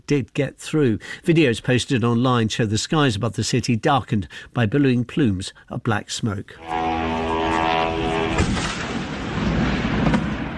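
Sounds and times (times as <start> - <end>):
speech: 0.1 - 7.2
oil refinery roaring while struck in a drone attack: 6.6 - 8.7
sharp blasts during drone attack on oil refinery: 6.7 - 10.5.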